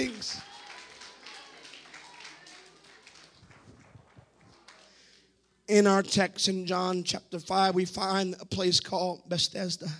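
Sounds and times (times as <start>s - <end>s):
audience clapping hands: 0.0s - 5.2s
speech: 5.7s - 9.9s.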